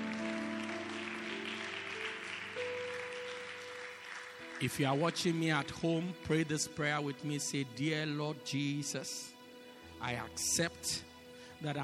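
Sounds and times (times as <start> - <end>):
audience clapping hands: 0.0 - 6.1
speech: 4.6 - 9.3, 10.0 - 11.8.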